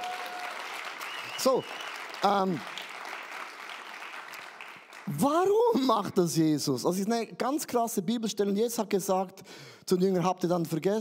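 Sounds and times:
audience applause: 0.0 - 5.3
speech: 1.4 - 2.8, 5.1 - 11.0.

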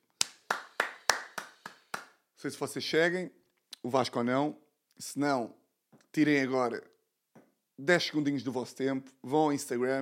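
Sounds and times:
clapping: 0.2 - 2.2
speech: 2.4 - 6.9, 7.8 - 10.0.

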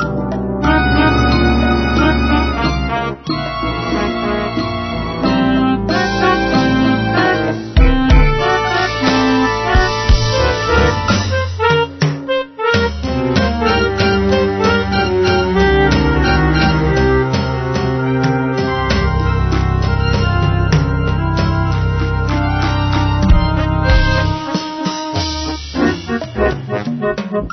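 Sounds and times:
loud carnival ride music: 0.0 - 27.5.

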